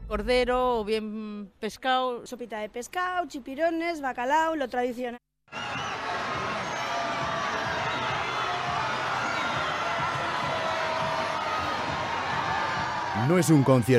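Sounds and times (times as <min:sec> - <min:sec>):
speech: 0:00.1 - 0:05.3, 0:13.2 - 0:13.9
crowd cheering and shouting at a street parade: 0:05.5 - 0:13.9.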